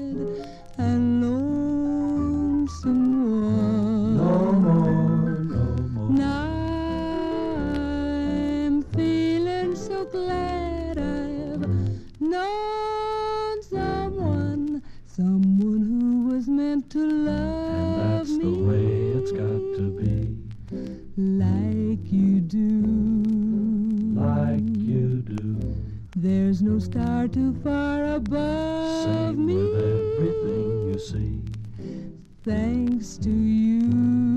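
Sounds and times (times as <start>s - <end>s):
female lead vocal: 0.0s - 20.4s, 21.2s - 25.1s, 26.1s - 31.1s, 32.4s - 34.3s
male backing vocals: 4.0s - 6.2s, 17.8s - 20.4s, 24.1s - 25.6s.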